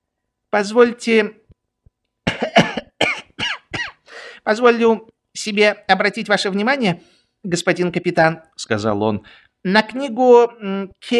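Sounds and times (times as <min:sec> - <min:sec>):
speech: 0:00.5 - 0:01.4, 0:04.5 - 0:11.1
voice imitating a cadet's deliberate pointed cough: 0:02.2 - 0:04.0.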